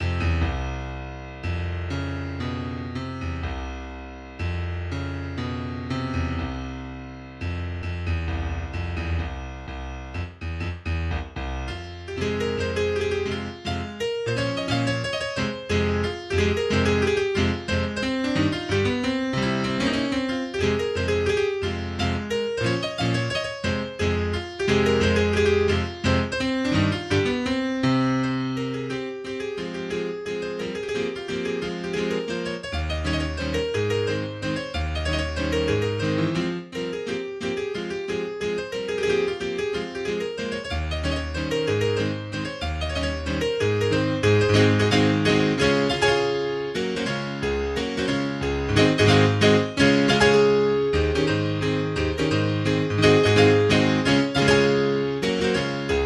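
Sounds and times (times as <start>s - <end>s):
mazurka in F major played sotto voce: 0.0s - 56.0s.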